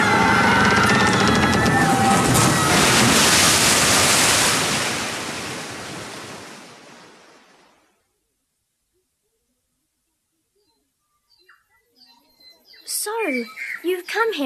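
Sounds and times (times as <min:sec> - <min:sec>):
storm wind: 0:00.0 - 0:07.7
crashing surf: 0:00.0 - 0:07.8
speech: 0:14.2 - 0:14.4.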